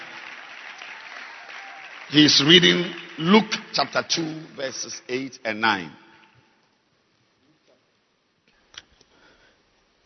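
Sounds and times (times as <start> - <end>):
audience clapping: 0.0 - 5.1
speech: 2.1 - 6.0.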